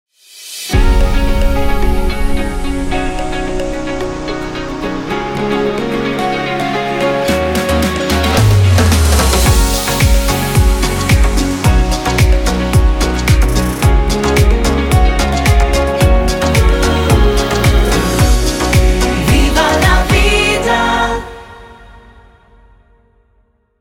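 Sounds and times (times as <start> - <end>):
relaxed theme music: 0.7 - 22.2.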